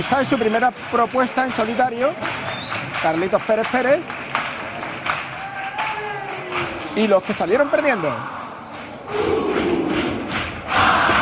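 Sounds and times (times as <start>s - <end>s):
speech: 0.0s - 4.2s, 7.0s - 8.4s
audience cheering and shouting a welcome for a performer's first solo act: 5.2s - 11.2s.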